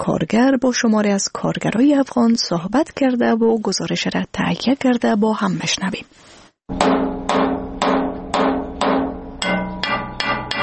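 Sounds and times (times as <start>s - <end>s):
speech: 0.0s - 7.1s
blacksmith's hammer striking metal: 6.7s - 10.6s.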